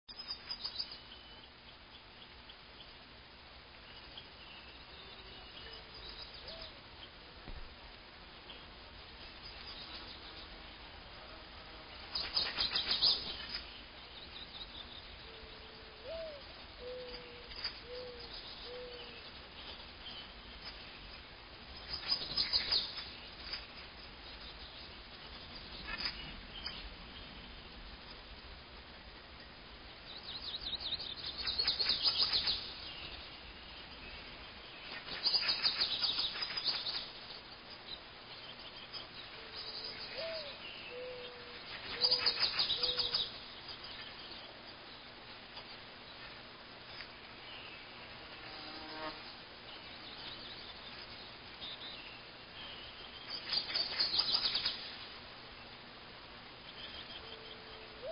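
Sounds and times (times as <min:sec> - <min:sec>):
morning birds singing: 0:00.1 - 0:27.9, 0:29.3 - 0:48.5, 0:49.1 - 0:58.0.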